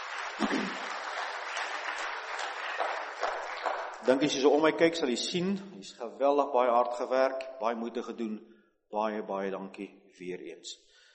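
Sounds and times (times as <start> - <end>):
audience clapping: 0.0 - 4.8
speech: 4.0 - 10.9.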